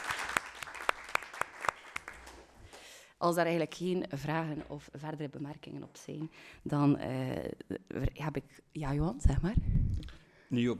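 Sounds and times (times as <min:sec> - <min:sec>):
short applause: 0:00.0 - 0:02.6
speech: 0:03.2 - 0:10.7.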